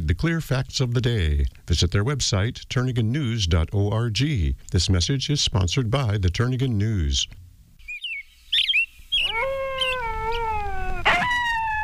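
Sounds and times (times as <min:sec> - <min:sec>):
speech: 0:00.1 - 0:07.4
bearded seal mating-season call beneath ice-covered Alaska waters: 0:09.2 - 0:11.8.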